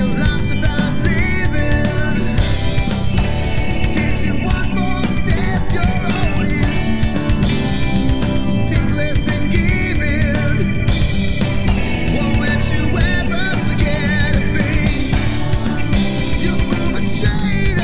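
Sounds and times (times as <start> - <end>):
acoustic harmony karaoke full mix: 0.0 - 17.8.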